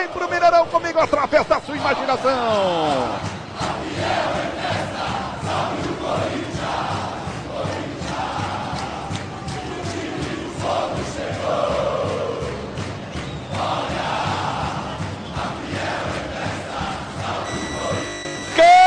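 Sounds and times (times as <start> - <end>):
stadium crowd of football supporters chanting and singing in unison: 0.0 - 18.8
speech: 0.1 - 3.3.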